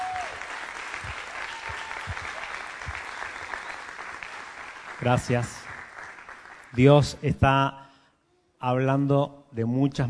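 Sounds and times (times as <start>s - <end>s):
audience applause: 0.0s - 6.9s
speech: 5.0s - 5.6s, 6.8s - 7.8s, 8.6s - 10.0s.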